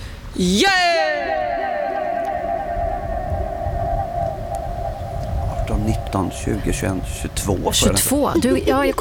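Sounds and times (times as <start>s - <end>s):
speech: 0.4s - 1.3s, 6.1s - 8.9s
shout echoing repeatedly off a ceiling: 0.4s - 7.1s.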